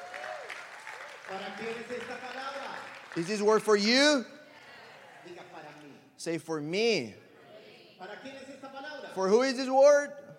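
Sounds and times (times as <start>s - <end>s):
audience clapping hands: 0.0s - 4.2s
speech: 1.3s - 4.4s, 6.2s - 7.2s, 8.0s - 10.2s.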